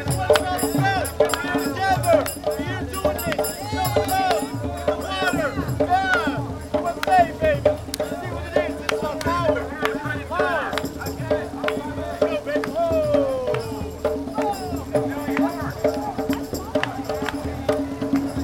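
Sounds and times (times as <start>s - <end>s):
chanting: 0.0s - 18.4s
drums: 0.0s - 18.4s.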